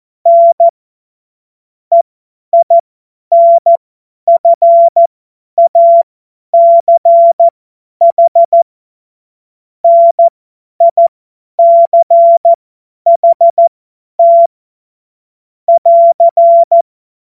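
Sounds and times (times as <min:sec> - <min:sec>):
CW Morse code beeps: 0:00.3 - 0:00.7, 0:02.6 - 0:08.6, 0:09.8 - 0:14.5, 0:15.7 - 0:16.8.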